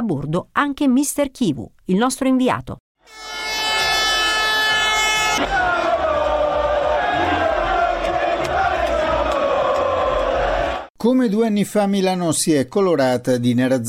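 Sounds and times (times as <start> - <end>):
speech: 0.0 - 3.4, 5.4 - 5.6, 11.0 - 13.8
horns blaring: 3.0 - 10.9
huge crowd of football fans celebrating: 3.8 - 10.9
football fans chanting: 5.4 - 10.9.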